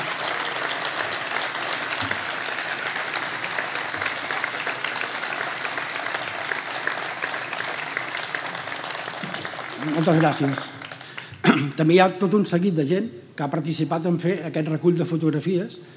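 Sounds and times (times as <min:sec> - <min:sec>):
crowd applause and ovation: 0:00.0 - 0:11.4
speech: 0:10.0 - 0:10.8, 0:11.6 - 0:15.9.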